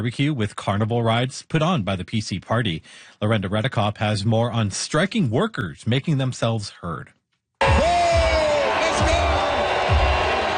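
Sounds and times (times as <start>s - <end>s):
speech: 0.0s - 7.2s, 9.0s - 9.2s
crowd booing: 7.6s - 10.5s.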